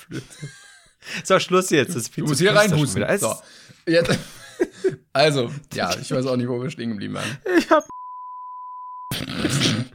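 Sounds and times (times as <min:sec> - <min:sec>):
speech: 0:00.0 - 0:00.6, 0:01.2 - 0:04.4, 0:05.2 - 0:07.9
censorship bleep over speech: 0:07.8 - 0:09.1.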